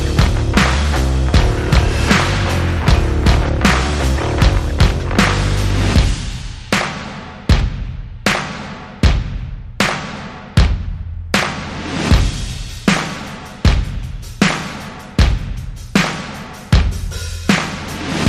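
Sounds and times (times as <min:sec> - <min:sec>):
bass: 0:00.0 - 0:06.9, 0:16.8 - 0:18.2
drums: 0:00.0 - 0:18.2.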